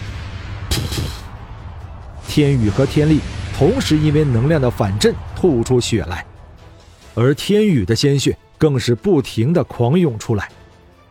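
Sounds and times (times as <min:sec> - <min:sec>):
booming explosion blasts: 0:00.0 - 0:07.2
steady low rumble: 0:00.0 - 0:07.5
speech: 0:02.4 - 0:06.3, 0:07.2 - 0:10.6.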